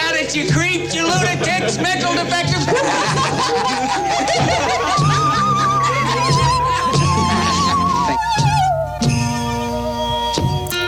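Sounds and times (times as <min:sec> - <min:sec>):
laughter: 0:00.1 - 0:10.8
speech: 0:00.3 - 0:04.7
singing saw playing in background: 0:02.7 - 0:10.8.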